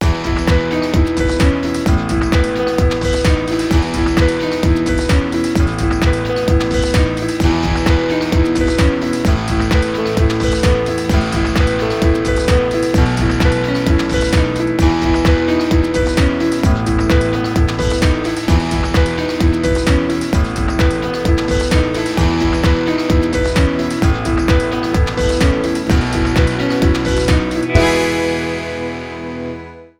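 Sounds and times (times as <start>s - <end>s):
piano: 0.0s - 29.9s.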